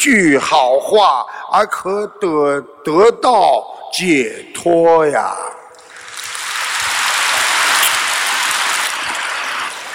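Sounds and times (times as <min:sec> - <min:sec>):
speech: 0:00.0 - 0:05.6
audience clapping: 0:05.8 - 0:09.9.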